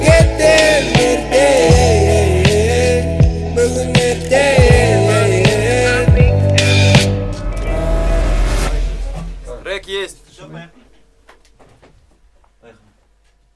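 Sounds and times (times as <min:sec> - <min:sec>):
guitar: 0:00.0 - 0:09.0.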